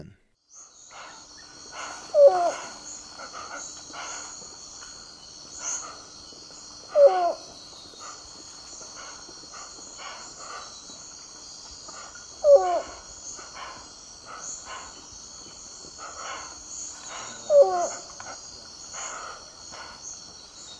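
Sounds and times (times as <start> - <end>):
Zigzag heron giving short hooting notes in eastern lowland South America: 0.9 - 20.2.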